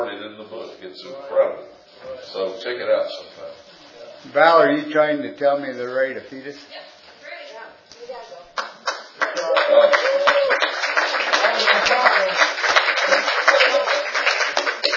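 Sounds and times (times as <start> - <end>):
speech: 0.7 - 7.0
audience applause: 8.8 - 14.9.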